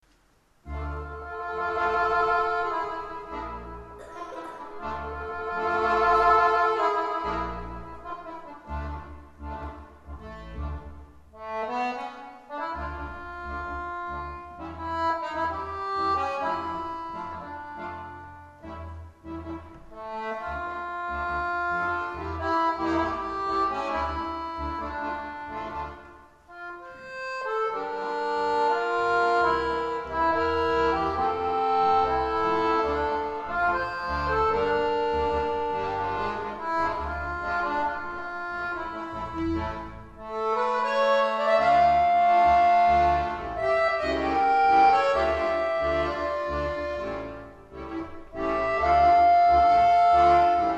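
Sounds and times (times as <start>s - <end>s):
tango music: 0.4s - 50.7s.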